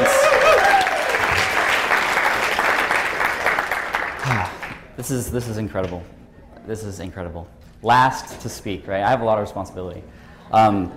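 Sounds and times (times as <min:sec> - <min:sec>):
audience round of applause: 0:00.0 - 0:04.8
speech: 0:05.1 - 0:10.9.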